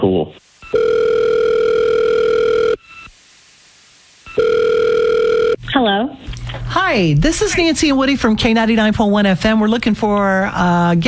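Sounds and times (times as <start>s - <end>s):
ringback tone of an outgoing phone call: 0.6s - 3.1s, 4.2s - 5.6s
speech: 6.9s - 11.0s.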